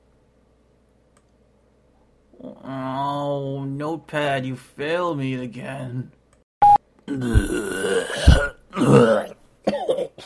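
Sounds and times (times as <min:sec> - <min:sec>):
speech: 0:02.4 - 0:06.2, 0:07.1 - 0:09.3
person coughing something up from the lungs: 0:07.1 - 0:10.2.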